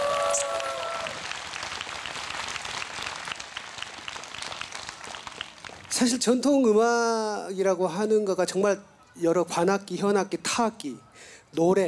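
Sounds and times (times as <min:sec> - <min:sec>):
audience applause: 0:00.0 - 0:06.0
speech: 0:06.0 - 0:11.8.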